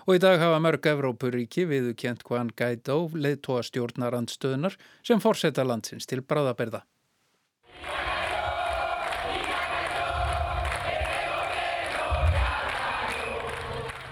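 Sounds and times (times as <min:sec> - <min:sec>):
speech: 0:00.0 - 0:07.0
large crowd of protesters chanting and shouting: 0:07.7 - 0:14.1
low rhythmic thumping: 0:08.4 - 0:13.2.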